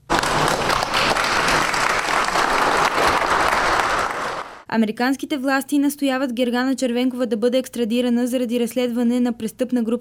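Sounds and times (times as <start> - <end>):
loud applause from supporters: 0.0 - 4.6
speech: 4.7 - 9.9.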